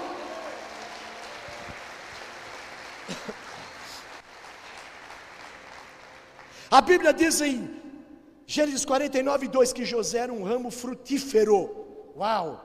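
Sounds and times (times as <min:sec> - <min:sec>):
audience applauding: 0:00.0 - 0:06.7
speech: 0:06.7 - 0:07.8, 0:08.5 - 0:12.6.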